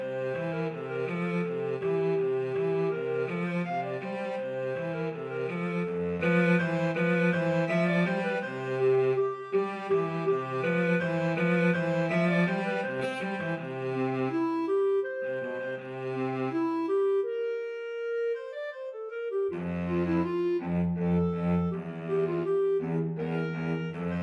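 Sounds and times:
cello in a clarinet-cello duet: 0:00.0 - 0:24.2
clarinet in a clarinet-cello duet: 0:00.0 - 0:24.2.

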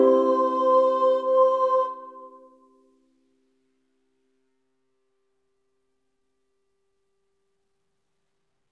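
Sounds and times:
ukulele playing: 0:00.0 - 0:02.1.

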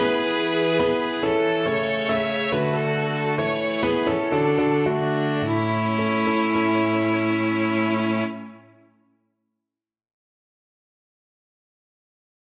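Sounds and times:
piano quartet: 0:00.0 - 0:08.8.

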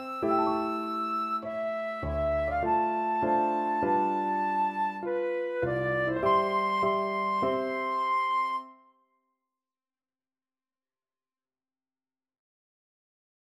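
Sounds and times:
flute playing a piano prelude: 0:00.0 - 0:09.0.

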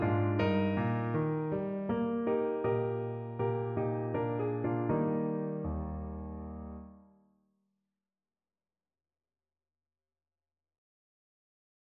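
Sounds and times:
piano piece: 0:00.0 - 0:07.1.

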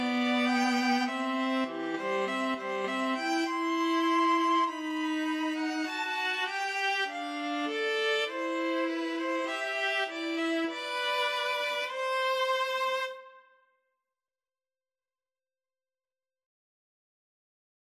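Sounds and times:
string trio playing a wedding march: 0:00.0 - 0:13.2.

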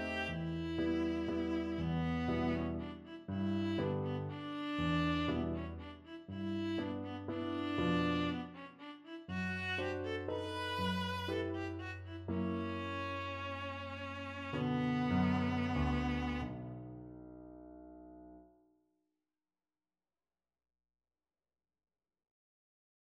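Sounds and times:
waltz played on viola: 0:00.0 - 0:16.8.

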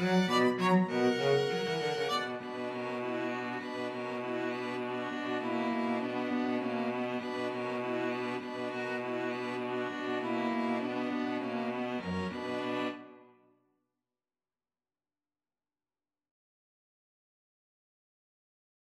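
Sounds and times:
string trio: 0:00.0 - 0:13.2.

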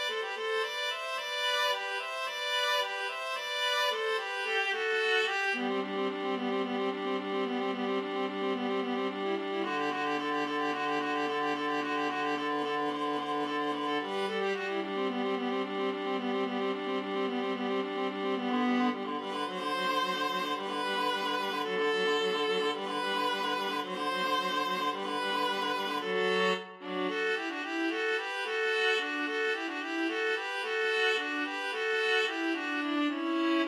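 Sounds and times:
viola duet: 0:00.0 - 0:33.6.

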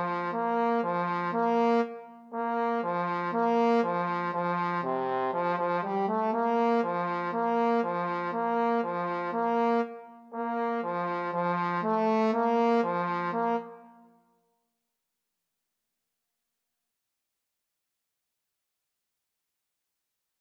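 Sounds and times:
trombone: 0:00.0 - 0:13.8
trumpet: 0:00.0 - 0:14.1.

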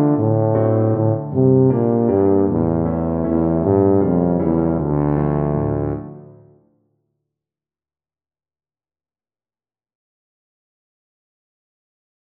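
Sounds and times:
tuba playing a folk tune: 0:00.0 - 0:06.5.

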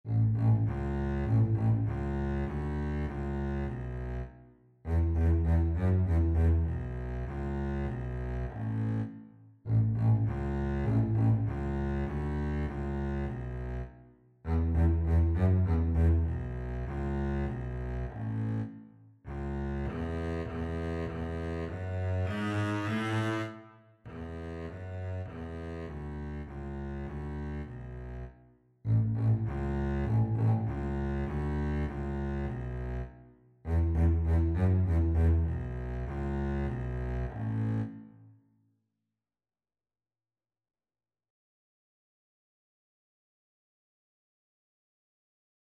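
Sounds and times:
double bass: 0:00.0 - 0:04.3, 0:04.9 - 0:28.3, 0:28.9 - 0:38.0.

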